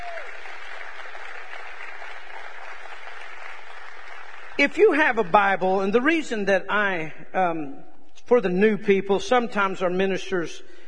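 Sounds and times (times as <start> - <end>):
audience clapping hands: 0.0 - 5.0
speech: 4.6 - 10.8.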